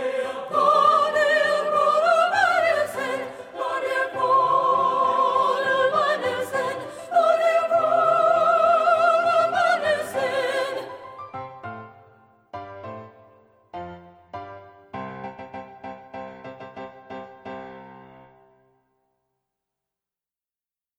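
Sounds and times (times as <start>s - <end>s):
soprano singing: 0.0s - 11.5s.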